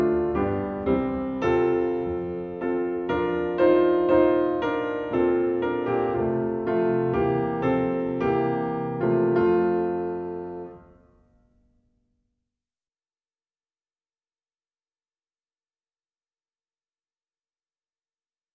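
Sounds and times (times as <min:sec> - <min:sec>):
ode on piano: 0:00.0 - 0:11.7.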